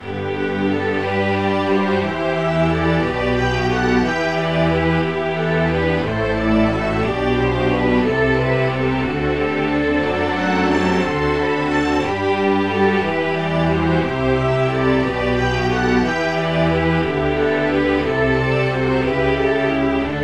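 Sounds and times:
slow strings: 0:00.0 - 0:20.2.

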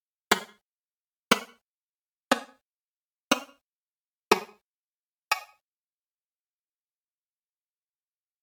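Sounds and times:
woodblock: 0:00.3 - 0:00.6, 0:01.3 - 0:01.6, 0:02.3 - 0:02.6, 0:03.3 - 0:03.6, 0:04.3 - 0:04.6, 0:05.3 - 0:05.6.

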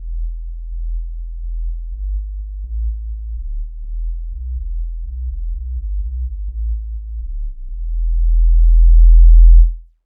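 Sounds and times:
whistle bass: 0:05.3 - 0:09.8.

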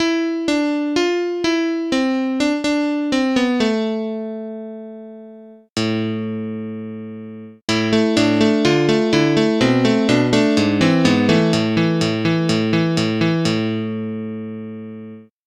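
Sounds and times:
electric piano: 0:00.0 - 0:15.3.

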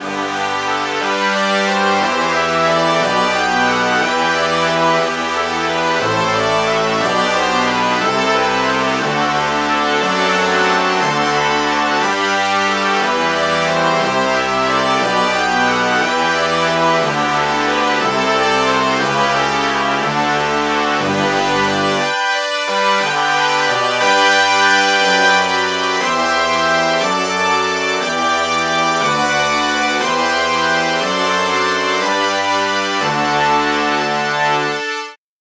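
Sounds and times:
brass section playing: 0:00.0 - 0:35.2.

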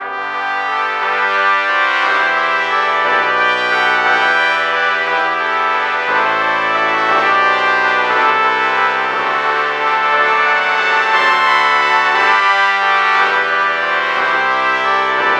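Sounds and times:
LPC morphed trumpet: 0:00.0 - 0:15.3.

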